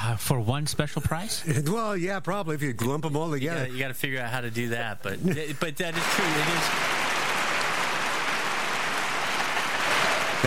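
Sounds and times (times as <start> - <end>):
speech: 0.1 - 7.0
applause: 5.9 - 10.4.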